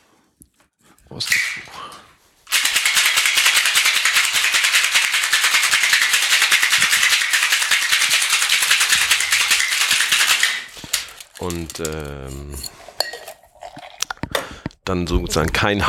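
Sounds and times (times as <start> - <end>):
speech: 1.1 - 2.2, 11.4 - 12.8, 14.9 - 15.8
cocktail shaker rattling: 2.5 - 14.0
ice clattering in a cocktail shaker: 2.5 - 14.3.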